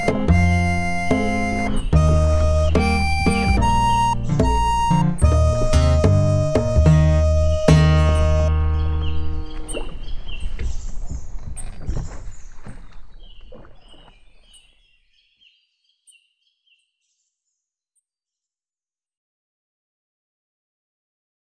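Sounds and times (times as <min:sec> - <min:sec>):
practice melody in E flat: 0:00.0 - 0:10.1.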